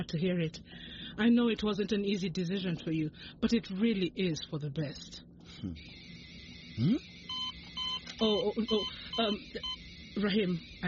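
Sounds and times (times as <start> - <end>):
speech: 0.0 - 6.1, 6.8 - 7.1, 8.2 - 10.8
seizure warning device alarm beeping: 5.7 - 10.8.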